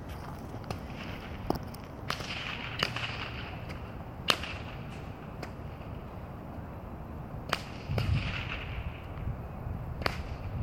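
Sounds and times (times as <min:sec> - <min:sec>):
steady low rumble and hiss: 0:00.0 - 0:10.6
bullwhips cracking in Cowen Park, Seattle: 0:02.0 - 0:05.7, 0:07.5 - 0:08.8, 0:10.0 - 0:10.5.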